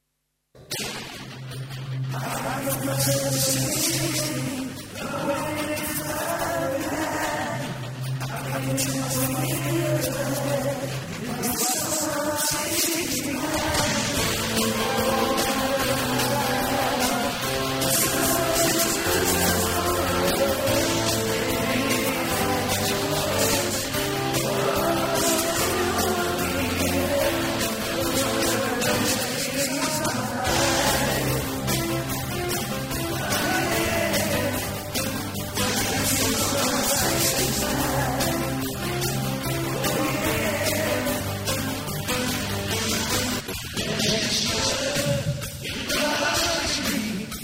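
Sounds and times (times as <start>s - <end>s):
rock music: 0.6s - 47.4s.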